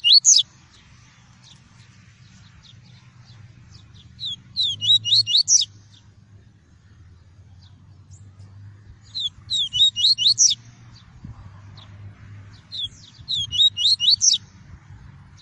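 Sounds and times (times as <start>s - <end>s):
double-collared seedeater singing whistled notes: 0.0s - 0.5s, 3.7s - 6.0s, 9.0s - 10.6s, 12.7s - 14.5s.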